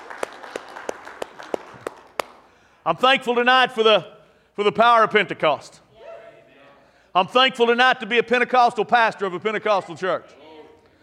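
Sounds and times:
audience hand clapping: 0.0 - 2.6
speech: 2.8 - 5.8, 7.2 - 10.4.

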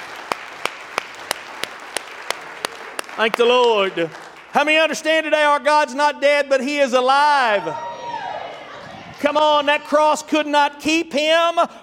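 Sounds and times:
audience hand clapping: 0.0 - 5.3
speech: 3.2 - 7.9, 9.2 - 11.8.

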